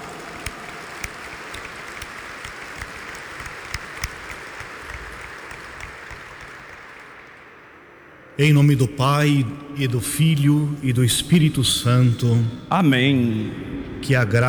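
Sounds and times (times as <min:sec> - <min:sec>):
crowd applause: 0:00.0 - 0:07.8
speech: 0:08.4 - 0:14.4.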